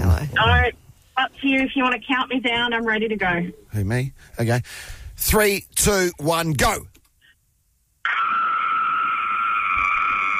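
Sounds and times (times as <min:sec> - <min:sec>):
speech: 0:00.3 - 0:06.9
woman screaming: 0:08.1 - 0:10.3.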